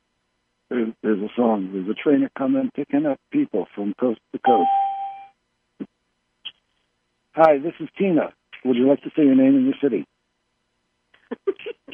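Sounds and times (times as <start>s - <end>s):
speech: 0.7s - 4.8s, 7.4s - 10.1s
conference line tones as callers join: 4.4s - 5.2s.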